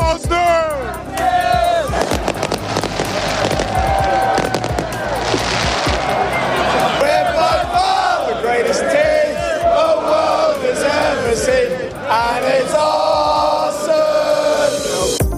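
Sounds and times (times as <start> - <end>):
football supporters cheering and chanting: 0.0 - 15.2
crackling bangs and pops: 2.0 - 6.2.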